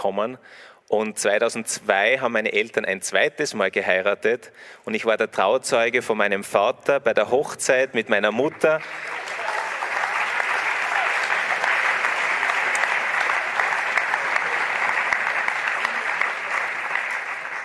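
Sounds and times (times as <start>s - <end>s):
speech: 0.0s - 9.3s
audience applause: 8.4s - 17.6s.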